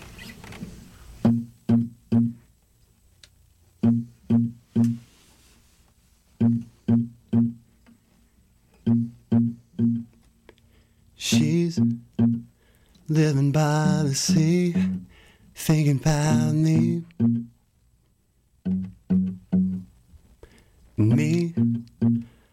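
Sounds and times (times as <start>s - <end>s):
guitar being retuned: 1.2s - 2.4s, 3.8s - 5.1s, 6.4s - 7.6s, 8.8s - 10.2s, 11.3s - 12.5s, 16.2s - 17.5s, 18.6s - 19.9s, 21.0s - 22.3s
speech: 13.1s - 17.1s.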